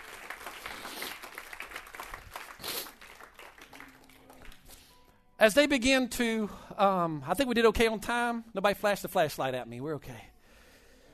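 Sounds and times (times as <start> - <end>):
audience clapping hands: 0.0 - 5.0
speech: 5.4 - 10.3.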